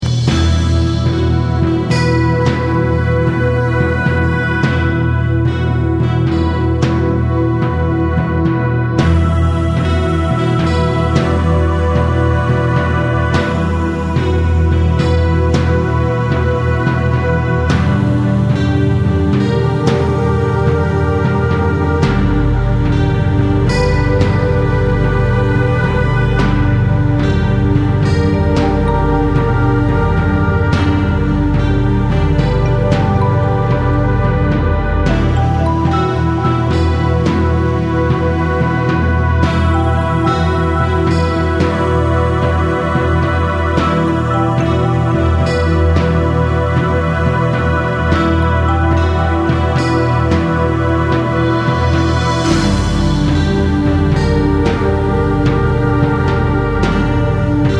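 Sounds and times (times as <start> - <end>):
witch drums: 0.0 - 57.7.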